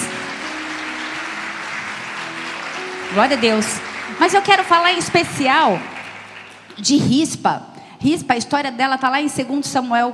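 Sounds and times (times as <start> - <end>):
audience applause: 0.0 - 6.8
speech: 3.1 - 5.9, 6.8 - 10.1.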